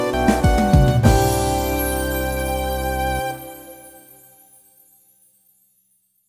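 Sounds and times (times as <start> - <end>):
start jingle: 0.1 - 4.8.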